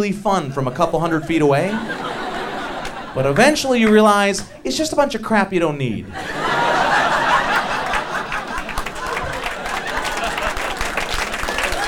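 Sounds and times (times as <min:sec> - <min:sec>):
speech: 0:00.0 - 0:02.2, 0:03.1 - 0:06.4
people laughing: 0:00.4 - 0:05.0, 0:06.0 - 0:11.8
audience applause: 0:01.1 - 0:03.4, 0:06.2 - 0:11.8.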